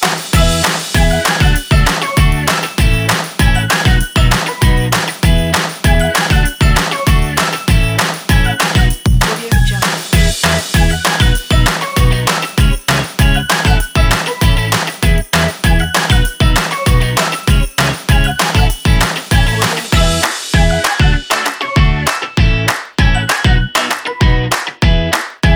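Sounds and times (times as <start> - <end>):
upbeat happy kids indie rock music: 0.0 - 25.5.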